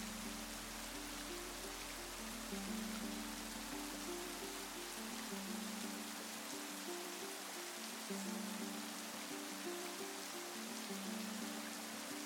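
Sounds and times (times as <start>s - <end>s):
rain hiss: 0.0s - 12.2s
soft low music with sustained chords: 0.0s - 12.2s.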